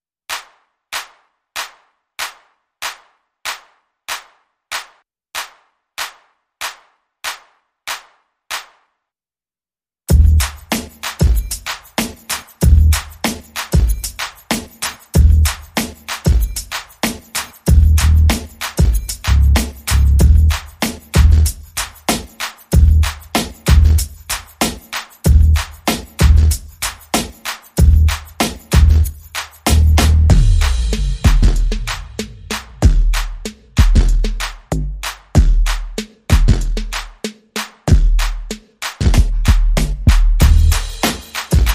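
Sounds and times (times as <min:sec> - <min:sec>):
bass: 0:10.1 - 0:10.5, 0:12.6 - 0:13.0, 0:15.2 - 0:15.5, 0:17.7 - 0:18.4, 0:19.0 - 0:20.6, 0:21.2 - 0:21.5, 0:22.8 - 0:23.1, 0:23.7 - 0:24.0, 0:25.3 - 0:25.6, 0:26.2 - 0:26.6, 0:27.8 - 0:28.2, 0:28.8 - 0:29.1, 0:29.7 - 0:37.2, 0:37.9 - 0:41.0
drums: 0:10.1 - 0:41.7.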